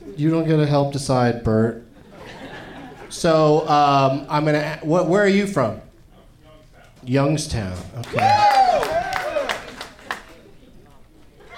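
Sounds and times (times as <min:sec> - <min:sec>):
speech: 0:00.2 - 0:01.9, 0:03.1 - 0:05.9, 0:07.0 - 0:08.8
laughter: 0:01.9 - 0:03.6, 0:11.2 - 0:11.5
crowd cheering and whooping: 0:08.0 - 0:09.9
audience clapping: 0:08.0 - 0:10.5.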